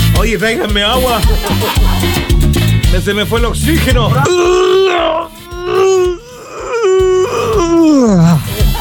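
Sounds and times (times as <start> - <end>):
speech: 0.2 - 2.3, 2.9 - 6.2, 7.8 - 8.4
laughter: 0.2 - 4.4, 8.2 - 8.7
person groaning while stretching: 4.0 - 8.7.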